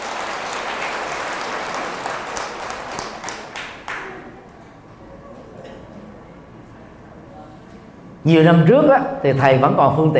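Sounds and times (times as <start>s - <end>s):
crowd applauding: 0.0s - 4.5s
speech: 8.2s - 10.1s.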